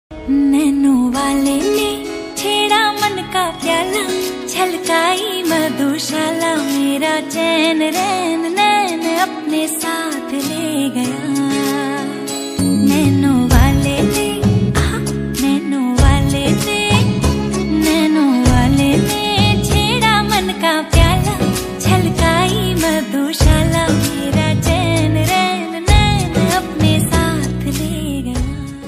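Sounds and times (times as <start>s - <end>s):
romantic Hindi song ringtone: 0.2s - 28.8s.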